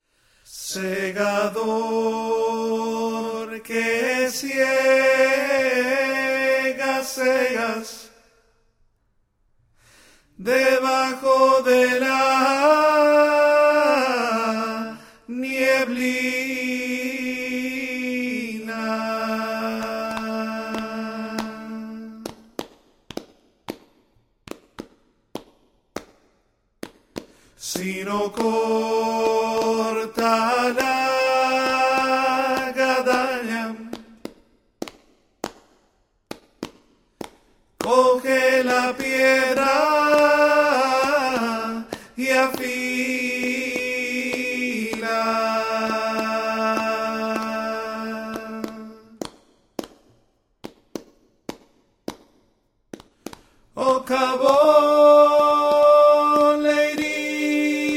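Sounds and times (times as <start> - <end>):
tenor singing: 0.5 - 8.3, 10.4 - 22.5, 27.6 - 34.2, 37.8 - 49.2, 53.7 - 57.9.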